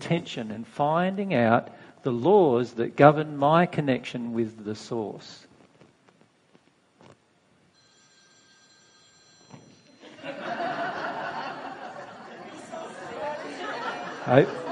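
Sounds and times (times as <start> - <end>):
speech: 0.0 - 5.5, 14.3 - 14.6
phone ringing: 7.8 - 11.6
crowd laughing: 10.0 - 14.6
crowd chatter: 11.8 - 14.6.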